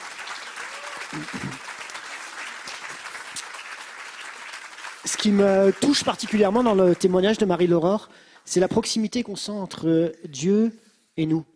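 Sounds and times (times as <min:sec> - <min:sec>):
audience applause: 0:00.0 - 0:07.4
speech: 0:01.1 - 0:01.7, 0:05.0 - 0:11.5.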